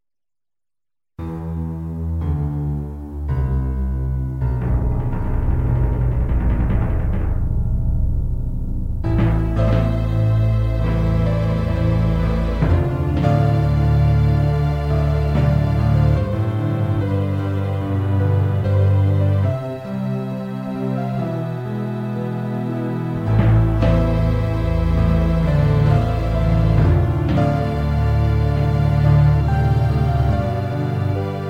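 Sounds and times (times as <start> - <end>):
orchestra music: 1.2 - 31.4.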